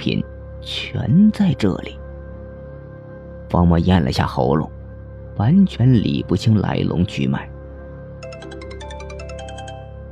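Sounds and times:
speech: 0.0 - 2.0, 3.5 - 4.8, 5.4 - 7.5
mobile phone ringtone: 8.2 - 10.0.

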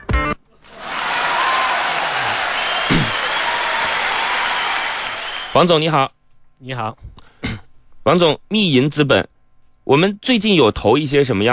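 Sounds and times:
audience applause: 0.6 - 5.7
speech: 5.6 - 7.2, 8.0 - 9.3, 9.9 - 11.5.

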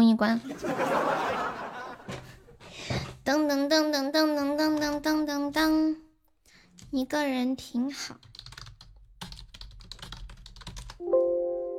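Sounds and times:
speech: 0.2 - 2.3, 3.3 - 6.0, 6.9 - 8.3
laughter: 0.4 - 2.5
typing on a computer keyboard: 8.2 - 11.0.

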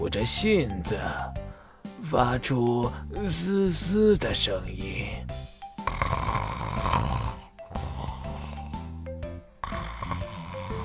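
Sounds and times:
speech: 0.1 - 1.4, 2.0 - 5.4
grandfather snoring in his sleep: 5.3 - 10.8.

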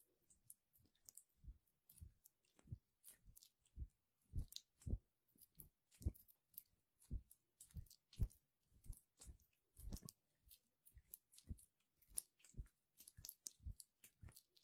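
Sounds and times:
hands rubbing aloe vera gel: 0.8 - 14.6.

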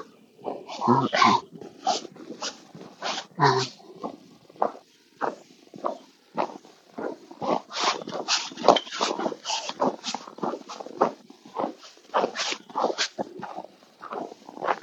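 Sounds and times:
footsteps crunching on snow: 0.0 - 14.8
speech: 0.8 - 2.6, 3.4 - 3.8.

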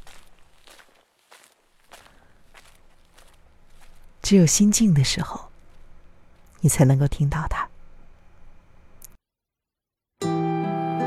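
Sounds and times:
soft scuffing footsteps: 0.0 - 6.6
speech: 4.3 - 5.5, 6.6 - 7.6.

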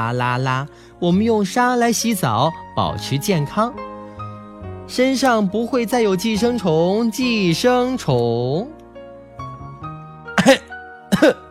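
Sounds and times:
speech: 0.0 - 3.9, 4.9 - 8.8
person coughing from choking on dust: 10.4 - 11.4.

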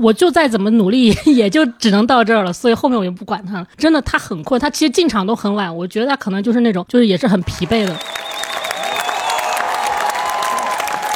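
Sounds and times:
speech: 0.0 - 8.6
audience applause at Cannes screening: 7.5 - 11.1
faint high whistle-like tones: 8.0 - 9.4.

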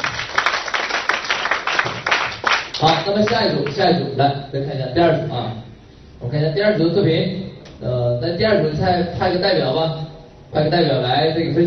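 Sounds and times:
audience applause: 0.0 - 3.8
speech: 2.8 - 11.6.

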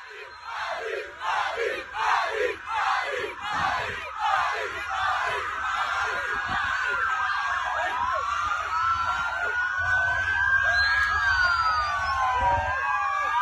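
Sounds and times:
football fans chanting in stadium: 0.0 - 10.2
steady roar of the stadium crowd: 0.0 - 13.3.

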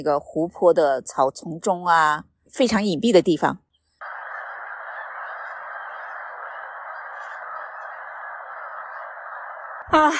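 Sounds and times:
speech: 0.0 - 3.6, 10.0 - 10.1
wild geese calling: 3.7 - 10.1.

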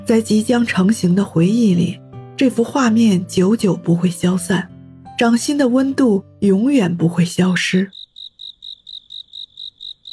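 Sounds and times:
speech: 0.1 - 8.0
cicada buzzing loudly in a tree: 7.9 - 10.1.

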